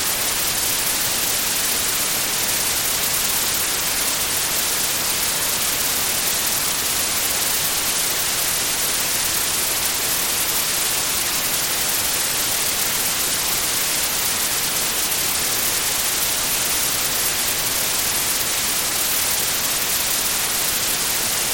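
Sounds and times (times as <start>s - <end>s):
classic white noise: 0.0s - 21.5s.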